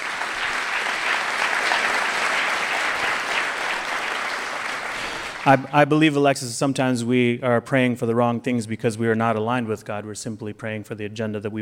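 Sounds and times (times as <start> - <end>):
applause: 0.0 - 5.8
speech: 5.4 - 11.5.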